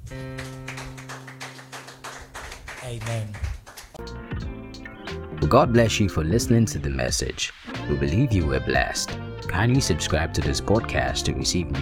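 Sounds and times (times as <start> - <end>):
audience clapping: 0.0 - 4.1
speech: 2.9 - 3.5, 5.4 - 11.8.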